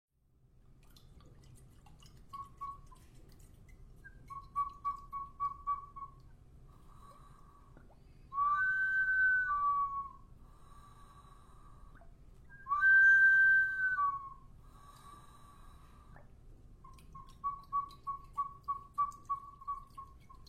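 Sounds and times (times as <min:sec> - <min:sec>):
Chorrera culture water whistle bottle from Ecuador: 0:02.3 - 0:03.1, 0:04.0 - 0:06.3, 0:08.3 - 0:10.3, 0:12.5 - 0:14.6, 0:16.9 - 0:20.4.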